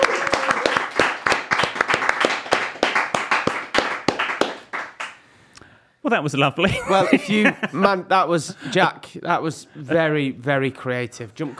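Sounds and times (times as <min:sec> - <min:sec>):
small group applauding: 0:00.0 - 0:05.3
speech: 0:06.1 - 0:11.5
laughter: 0:06.6 - 0:08.6.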